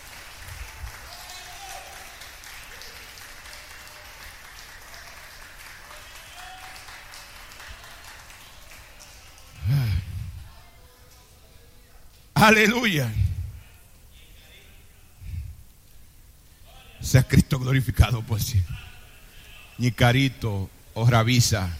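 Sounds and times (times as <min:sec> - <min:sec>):
audience applause: 0:00.0 - 0:10.6
speech: 0:12.4 - 0:13.2, 0:17.3 - 0:19.0, 0:19.8 - 0:21.7.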